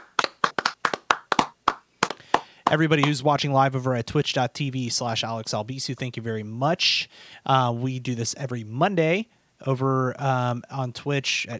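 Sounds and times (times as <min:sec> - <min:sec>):
hands clapping: 0:00.0 - 0:03.2
speech: 0:02.7 - 0:11.5.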